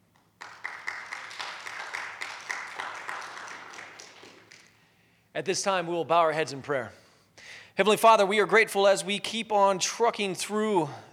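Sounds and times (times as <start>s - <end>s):
audience applause: 0.4s - 4.7s
speech: 5.4s - 7.0s, 7.8s - 11.1s.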